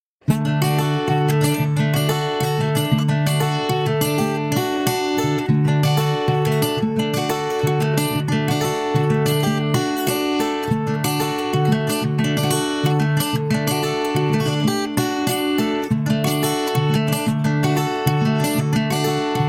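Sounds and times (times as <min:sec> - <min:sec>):
guitar: 0:00.2 - 0:19.4.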